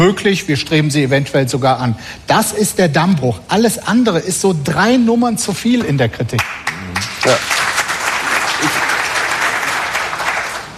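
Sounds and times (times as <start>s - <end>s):
speech: 0.0s - 7.6s
audience applause: 6.6s - 10.7s.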